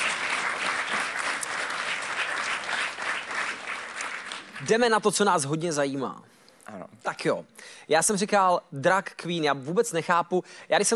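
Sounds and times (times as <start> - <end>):
clapping applause: 0.0 - 5.0
speech: 4.6 - 10.9.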